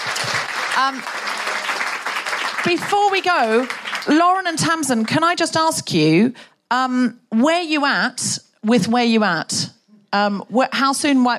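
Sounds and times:
crowd clapping: 0.0 - 5.3
speech: 0.8 - 1.3, 2.6 - 11.3.

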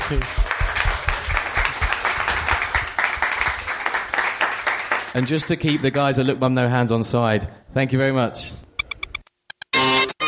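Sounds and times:
crowd applauding: 0.0 - 6.2
speech: 0.1 - 0.4, 5.2 - 8.7.

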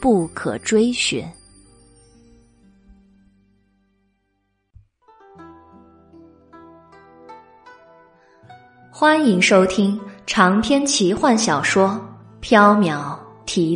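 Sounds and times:
speech: 0.0 - 1.4, 9.0 - 13.7
silver bells tinkling in the wind: 0.0 - 2.7.

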